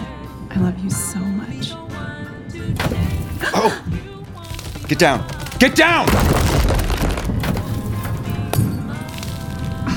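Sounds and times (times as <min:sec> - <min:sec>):
speech: 0:00.6 - 0:04.1, 0:04.9 - 0:06.6
crash of something tearing through roof: 0:04.4 - 0:09.8.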